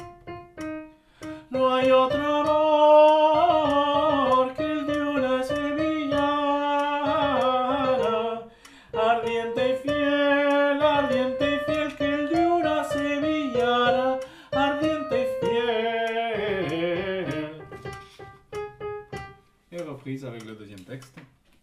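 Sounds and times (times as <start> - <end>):
soprano singing: 1.3 - 18.0.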